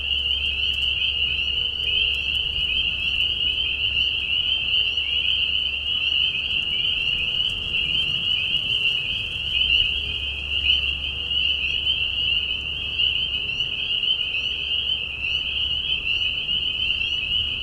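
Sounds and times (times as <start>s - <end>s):
spring peepers in chorus: 0.0s - 17.6s.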